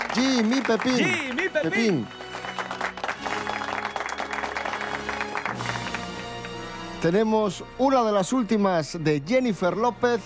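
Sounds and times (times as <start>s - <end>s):
audience applause: 0.0s - 6.6s
music playing: 0.0s - 10.2s
speech: 0.2s - 2.2s, 7.0s - 10.2s.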